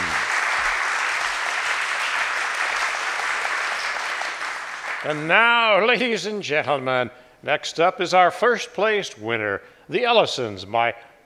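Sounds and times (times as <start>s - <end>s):
audience applause: 0.0s - 5.3s
speech: 5.0s - 11.1s.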